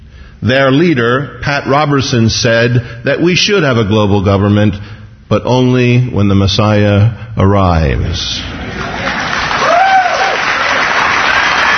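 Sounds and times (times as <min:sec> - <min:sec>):
speech: 0:00.4 - 0:08.9
audience applause: 0:08.7 - 0:11.7.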